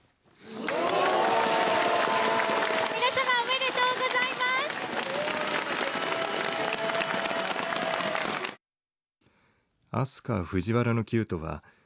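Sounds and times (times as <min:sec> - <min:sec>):
crowd clapping and cheering at a public viewing in Nara Prefecture: 0:00.4 - 0:08.6
speech: 0:10.0 - 0:11.8.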